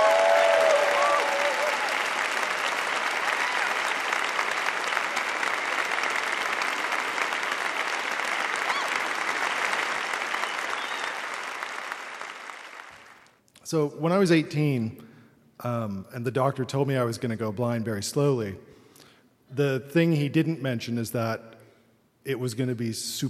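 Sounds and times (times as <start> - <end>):
audience applause: 0.0 - 13.4
speech: 13.7 - 15.0, 15.6 - 18.8, 19.6 - 21.5, 22.2 - 23.2.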